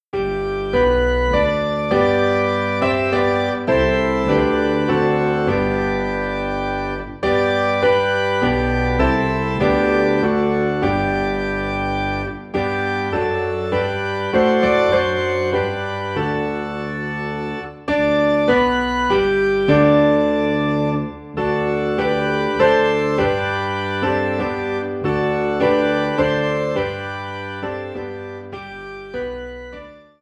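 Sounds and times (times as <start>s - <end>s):
piano: 0.0s - 30.1s
organ: 0.1s - 30.1s.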